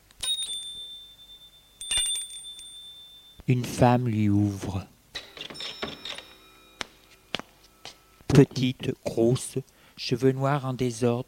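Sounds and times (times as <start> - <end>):
doorbell ringing: 0.2 - 3.4, 5.2 - 8.2
speech: 3.5 - 4.9, 8.3 - 11.2.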